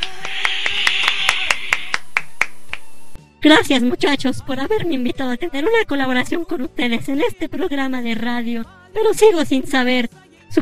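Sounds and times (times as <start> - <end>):
applause: 0.0 - 3.0
speech: 3.4 - 10.6.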